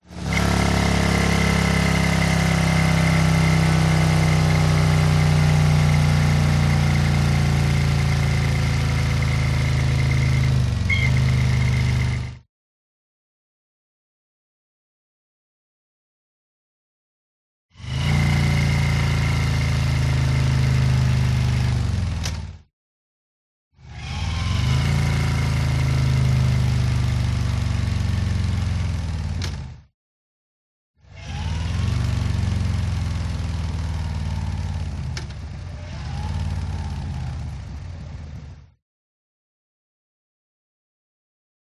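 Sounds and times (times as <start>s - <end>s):
Harley motorcycle decelerating: 0.0s - 12.4s, 17.8s - 22.6s, 23.8s - 29.7s, 31.1s - 38.6s.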